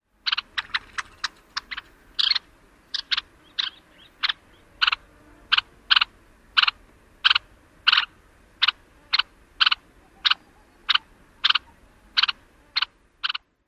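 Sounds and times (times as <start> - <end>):
calls: 0.2 - 13.6
rattles: 0.6 - 1.9.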